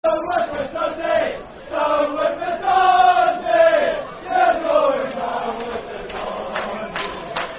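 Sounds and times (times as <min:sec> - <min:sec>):
football crowd chanting: 0:00.0 - 0:07.5.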